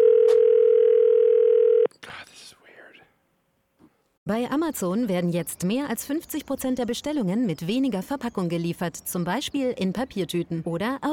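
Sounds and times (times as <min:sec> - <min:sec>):
telephone dial tone: 0:00.0 - 0:01.9
speech: 0:04.3 - 0:11.1.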